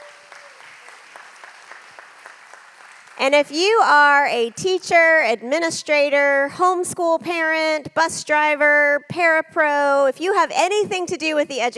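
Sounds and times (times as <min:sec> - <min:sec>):
audience applauding: 0:00.0 - 0:05.0
speech: 0:03.2 - 0:11.7.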